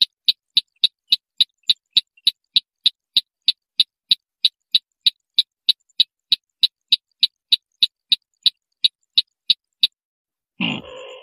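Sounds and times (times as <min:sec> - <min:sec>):
white-breasted waterhen train of sharp clicks: 0:00.0 - 0:10.0.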